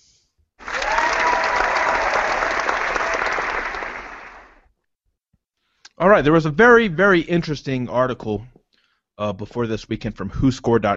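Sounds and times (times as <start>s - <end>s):
studio audience applause: 0.6s - 4.7s
speech: 6.0s - 8.5s, 9.2s - 10.9s.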